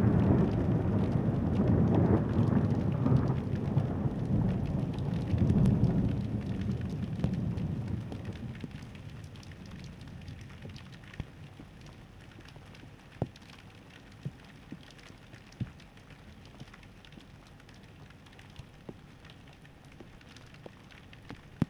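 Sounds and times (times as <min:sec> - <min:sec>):
thunder: 0:00.0 - 0:10.8.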